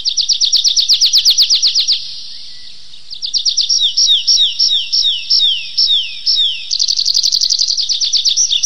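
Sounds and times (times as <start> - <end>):
tree pipit Anthus trivialis trilling: 0.0 - 8.6.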